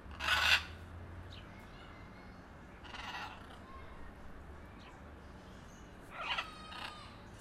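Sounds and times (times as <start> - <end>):
blue-and-yellow macaw giving harsh raspy squawks at the Jardin des Plantes, Paris: 0.1 - 0.8, 2.8 - 3.7, 6.1 - 7.3.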